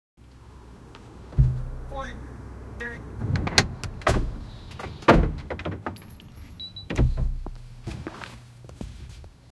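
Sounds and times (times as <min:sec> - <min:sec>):
car door exterior: 0:01.3 - 0:02.1, 0:03.2 - 0:08.1.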